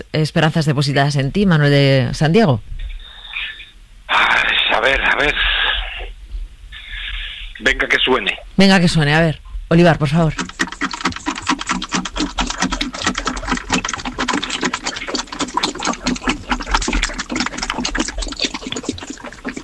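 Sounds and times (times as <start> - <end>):
speech: 0.0 - 2.8, 4.1 - 5.4, 7.6 - 10.7
sewing machine running: 10.4 - 19.2.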